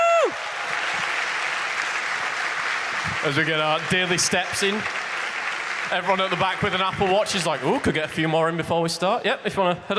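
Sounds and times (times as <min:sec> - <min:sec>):
audience applause: 0:00.0 - 0:08.6
speech: 0:03.2 - 0:05.0, 0:05.9 - 0:09.9.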